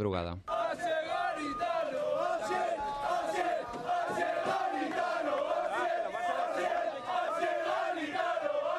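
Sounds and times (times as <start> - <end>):
football fans chanting at Butarque: 0.4 - 8.7.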